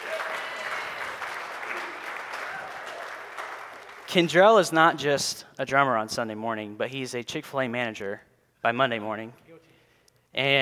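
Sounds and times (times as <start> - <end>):
audience applause: 0.0 - 4.3
speech: 4.1 - 9.7, 10.3 - 10.6.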